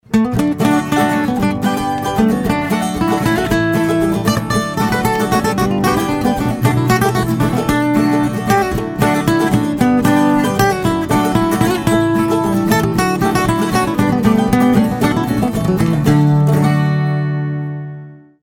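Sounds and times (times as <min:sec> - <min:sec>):
country music cue: 0:00.0 - 0:18.3.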